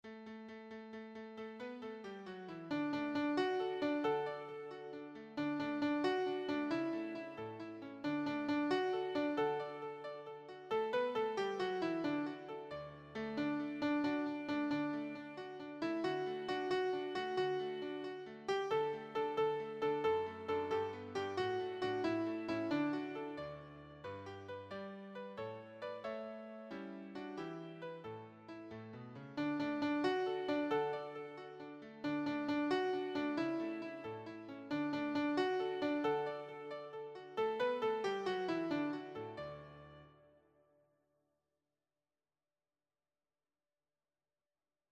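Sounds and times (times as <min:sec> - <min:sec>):
nursery rhyme melody: 0:02.7 - 0:28.1, 0:29.4 - 0:39.7.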